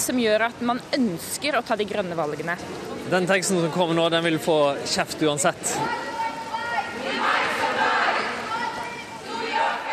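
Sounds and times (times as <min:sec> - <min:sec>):
speech: 0:00.0 - 0:06.1
climate demonstrators chanting: 0:05.9 - 0:09.9.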